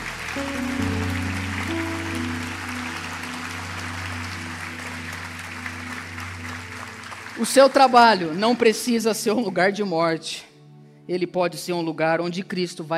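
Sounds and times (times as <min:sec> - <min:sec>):
sustained low keyboard chords: 0:00.0 - 0:07.5
audience applauding: 0:00.0 - 0:09.3
speech: 0:07.4 - 0:10.5, 0:11.1 - 0:12.9.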